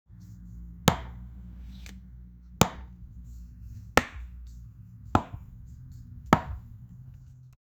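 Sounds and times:
soccer ball being shot: 0:00.9 - 0:01.2, 0:02.6 - 0:03.0, 0:04.0 - 0:04.4, 0:05.2 - 0:05.6, 0:06.3 - 0:06.8.

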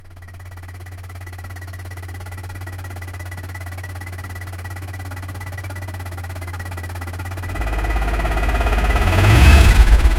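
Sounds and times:
Ford LTD Crown Victoria car: 0:00.0 - 0:10.1.

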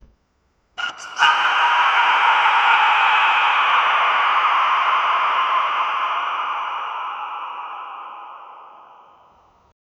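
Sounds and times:
scary supernatural witch voice: 0:00.8 - 0:09.4.

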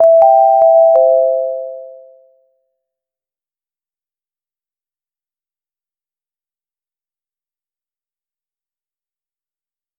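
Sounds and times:
short positive sound effect: 0:00.0 - 0:02.3.

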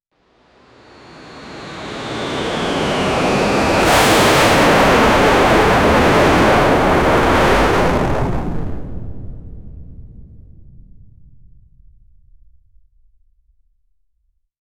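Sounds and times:
ultra fast jet approaching: 0:00.6 - 0:09.4.

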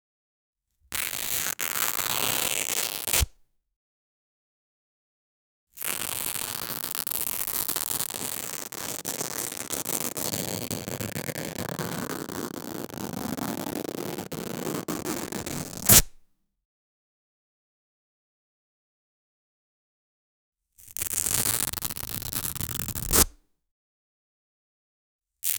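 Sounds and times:
constant fabric tearing: 0:01.0 - 0:03.3, 0:05.8 - 0:16.2, 0:20.9 - 0:23.3.

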